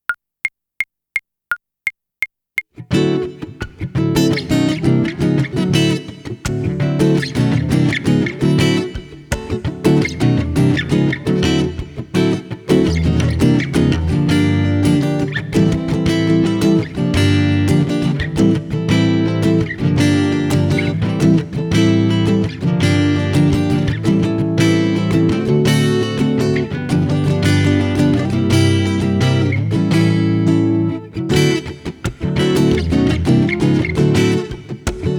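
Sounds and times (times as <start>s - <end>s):
instrumental music: 2.8s - 35.1s.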